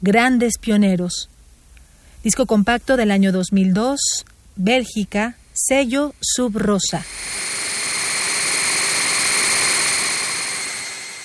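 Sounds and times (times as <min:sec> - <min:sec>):
speech: 0:00.0 - 0:01.4, 0:02.2 - 0:07.6
electronic noise music on Moog synthesizer: 0:06.1 - 0:11.2.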